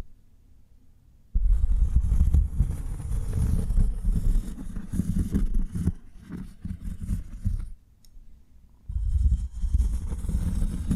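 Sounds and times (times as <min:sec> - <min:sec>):
cork rubbed and scraped: 0:01.4 - 0:07.8, 0:08.9 - 0:10.9.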